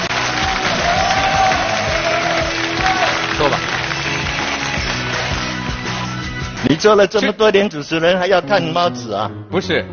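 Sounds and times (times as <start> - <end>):
audience applause: 0.0 - 6.0
faint cheers: 0.1 - 3.4
speech: 6.8 - 9.9.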